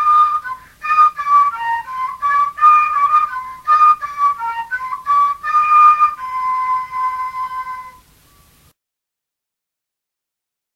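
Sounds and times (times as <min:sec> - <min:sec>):
fife playing: 0:00.0 - 0:08.6.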